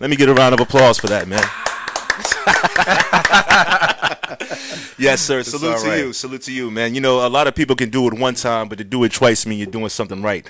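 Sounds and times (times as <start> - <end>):
speech: 0.0 - 1.6, 2.2 - 10.4
round of applause: 0.3 - 4.1
laughter: 1.2 - 5.9.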